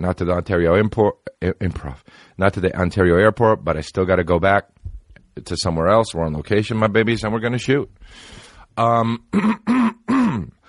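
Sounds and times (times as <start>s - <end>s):
speech: 0.0s - 4.8s, 5.4s - 10.6s
throat hawking and clearing: 9.0s - 10.6s.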